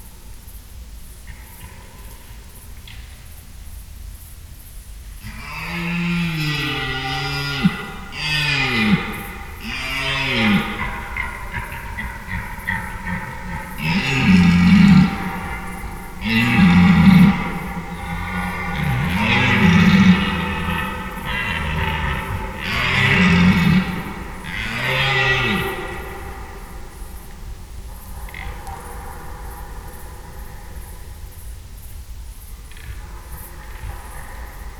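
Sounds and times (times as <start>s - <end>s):
red deer stag roaring: 5.2s - 27.4s.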